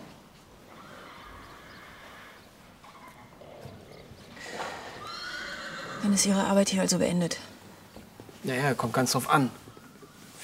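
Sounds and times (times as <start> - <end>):
horse neighing and whinnying: 0.6 - 6.3
speech: 6.0 - 7.5, 8.4 - 9.6.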